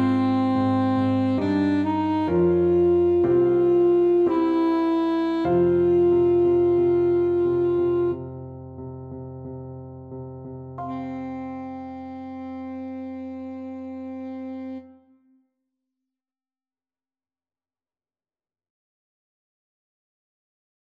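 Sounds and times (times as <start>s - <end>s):
alto saxophone playing a pavane: 0.0s - 8.4s, 10.8s - 15.3s.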